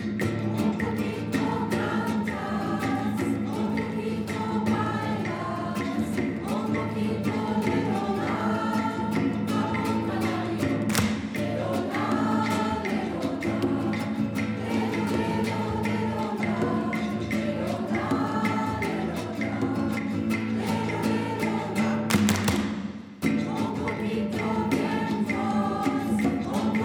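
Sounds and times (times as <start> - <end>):
choir singing at an Advent concert: 0.2 - 26.8.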